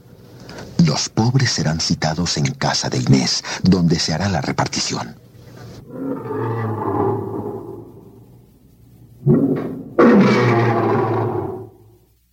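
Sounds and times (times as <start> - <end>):
speech: 0.9 - 5.2
lions roaring in the amphitheatre vivarium: 5.8 - 8.2, 9.2 - 11.8.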